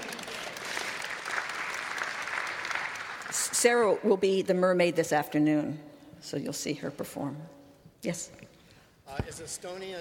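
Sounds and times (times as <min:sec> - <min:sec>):
audience applause: 0:00.0 - 0:03.5
speech: 0:03.3 - 0:08.5, 0:09.1 - 0:09.9.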